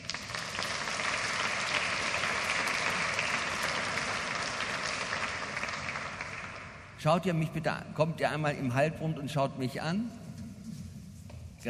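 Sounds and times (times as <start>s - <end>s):
audience applause: 0.0s - 7.0s
speech: 7.0s - 10.2s.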